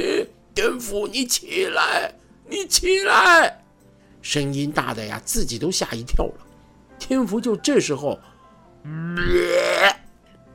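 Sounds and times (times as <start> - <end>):
speech: 0.6 - 3.6, 4.2 - 10.0
long burp: 8.8 - 10.1.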